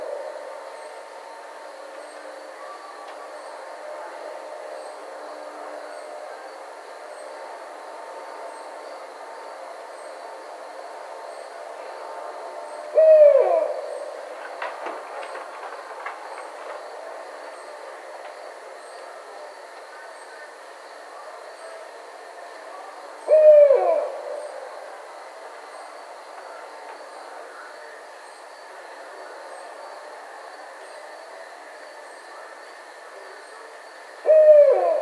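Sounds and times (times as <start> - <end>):
Barred Owl calling: 12.9 - 14.4, 23.3 - 24.7, 34.3 - 35.0.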